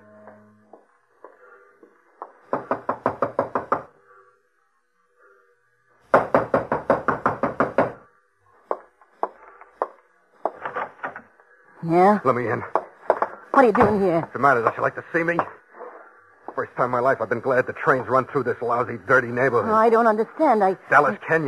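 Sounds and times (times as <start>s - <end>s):
knocking on a door: 2.5s - 3.9s, 6.1s - 8.0s
speech: 11.8s - 12.8s, 13.6s - 15.6s, 16.6s - 21.4s.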